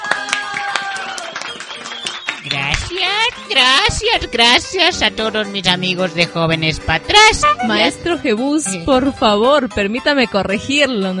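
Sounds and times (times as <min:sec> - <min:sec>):
loud cheering voices: 0:00.0 - 0:02.7
studio audience applause: 0:00.0 - 0:03.5
speech: 0:02.5 - 0:11.1.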